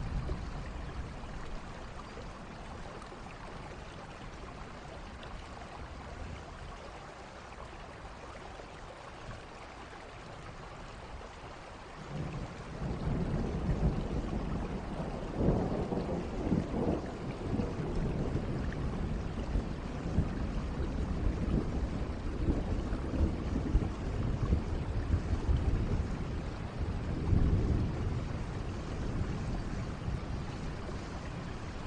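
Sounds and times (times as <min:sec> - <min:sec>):
thunder rumbling: 0:00.0 - 0:02.3, 0:12.1 - 0:31.8
heavy rain: 0:00.0 - 0:31.8.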